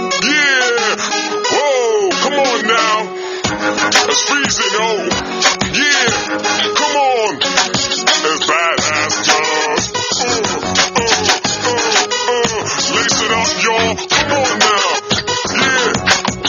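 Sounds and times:
man rapping hip hop: 0.2 - 16.3.

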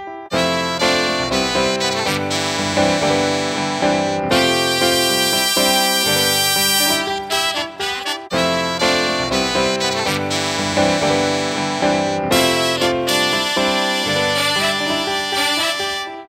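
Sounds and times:
big band ringtone: 0.3 - 16.0.

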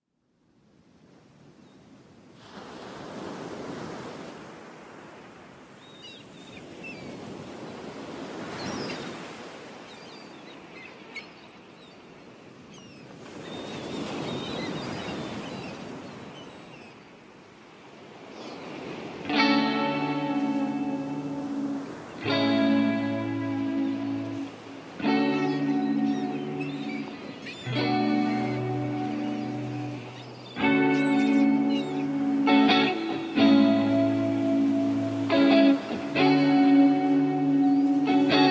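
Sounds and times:
beach breeze: 18.4 - 38.4.

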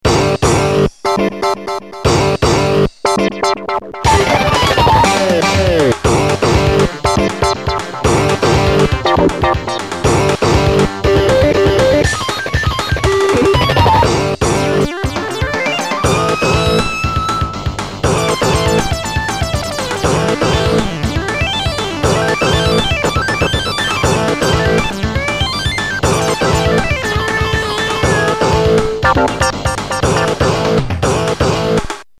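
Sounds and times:
guitar: 0.0 - 31.8.

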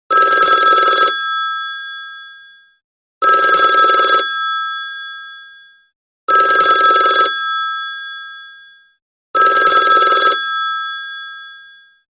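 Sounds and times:
old phone ringtone: 0.1 - 12.1.

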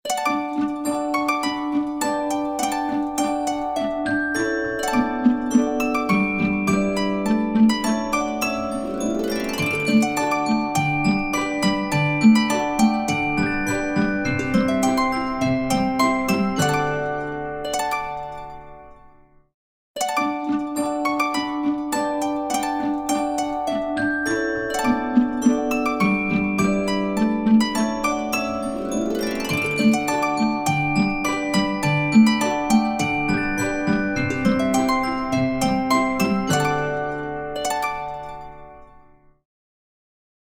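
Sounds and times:
ringtone: 0.1 - 19.3, 20.0 - 39.3.

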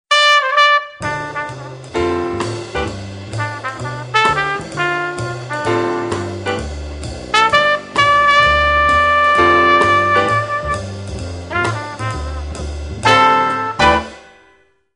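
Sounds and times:
jazz music: 0.1 - 14.7.

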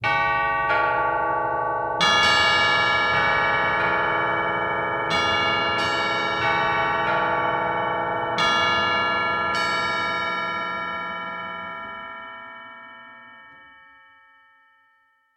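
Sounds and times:
evening bell: 0.0 - 15.3.

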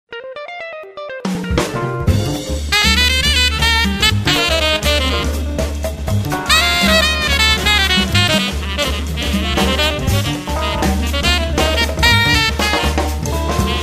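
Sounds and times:
jazz bar ambience: 0.4 - 13.8.

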